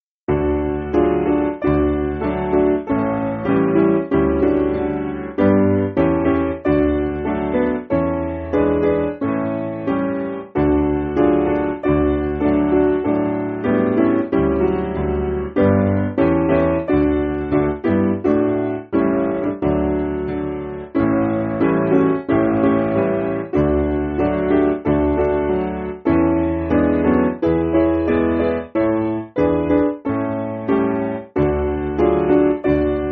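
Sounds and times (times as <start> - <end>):
piano: 0.3 - 33.1.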